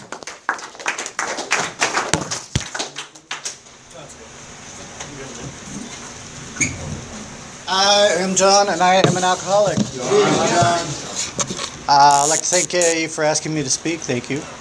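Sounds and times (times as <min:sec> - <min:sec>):
audience applause welcoming a speaker: 0:00.0 - 0:03.6
hiss: 0:03.5 - 0:14.5
speech: 0:07.7 - 0:11.0, 0:11.9 - 0:14.5.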